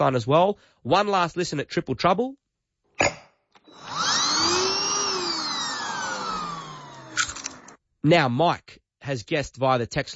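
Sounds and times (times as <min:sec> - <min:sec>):
speech: 0:00.0 - 0:02.4, 0:03.0 - 0:03.2, 0:08.0 - 0:10.1
coffee grinder whirring: 0:03.6 - 0:07.8
clicks: 0:06.2 - 0:07.8.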